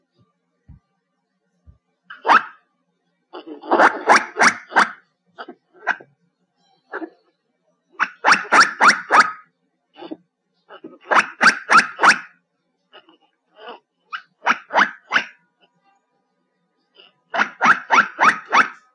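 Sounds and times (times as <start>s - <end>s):
black giant squirrel calls: 2.1s - 2.6s, 3.4s - 6.1s, 8.0s - 12.4s, 13.0s - 15.4s, 17.0s - 18.9s.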